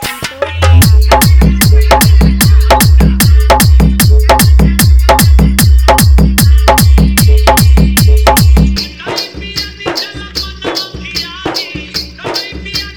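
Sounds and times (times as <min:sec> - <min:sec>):
vibrating bass music mix: 0:00.6 - 0:08.8.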